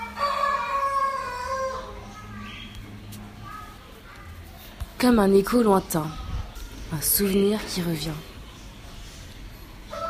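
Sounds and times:
rooster crowing at dawn: 0.0s - 2.0s, 9.9s - 10.0s
speech: 5.0s - 6.2s, 6.9s - 8.3s.

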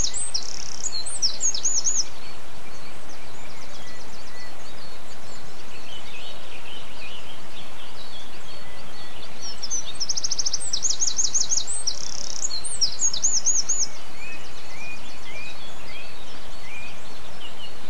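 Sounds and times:
bird song with rapid high ticking trills: 0.0s - 17.8s.

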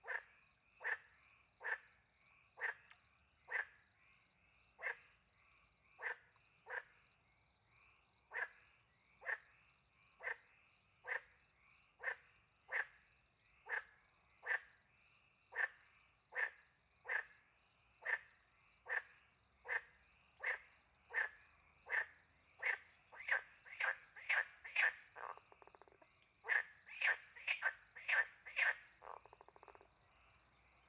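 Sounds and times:
frogs croaking: 0.0s - 30.8s
crickets trilling: 18.8s - 30.8s.

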